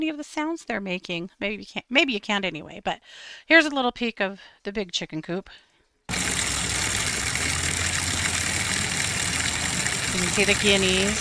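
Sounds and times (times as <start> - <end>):
speech: 0.0 - 6.4, 10.1 - 11.1
steady roar of highway traffic with low engine rumble: 6.1 - 11.1.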